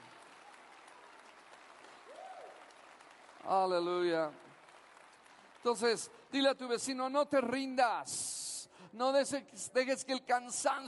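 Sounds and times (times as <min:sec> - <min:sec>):
audience applauding: 0:00.0 - 0:07.0
speech: 0:03.4 - 0:04.5, 0:05.6 - 0:10.8.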